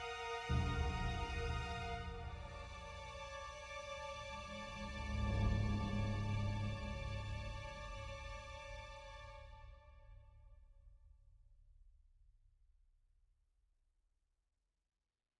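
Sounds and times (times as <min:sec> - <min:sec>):
string instrument: 0:00.0 - 0:10.2.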